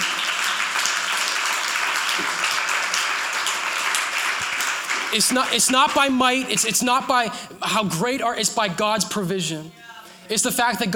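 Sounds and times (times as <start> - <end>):
audience clapping hands: 0.0 - 7.3
speech: 5.1 - 10.9.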